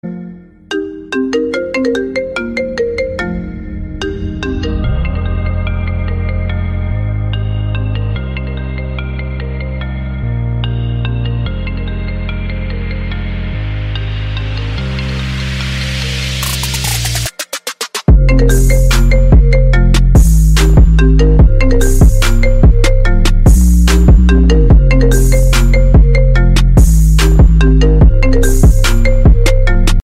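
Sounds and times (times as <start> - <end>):
epic music: 2.4 - 17.4, 18.1 - 30.0.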